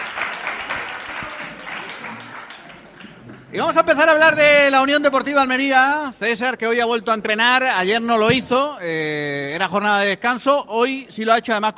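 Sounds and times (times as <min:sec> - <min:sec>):
studio audience applause: 0:00.0 - 0:04.2
speech: 0:03.5 - 0:11.7.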